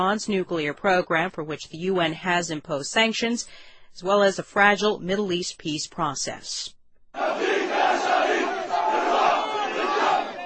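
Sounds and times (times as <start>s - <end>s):
speech: 0.0s - 7.5s
protesters shouting at a funeral: 7.2s - 10.4s.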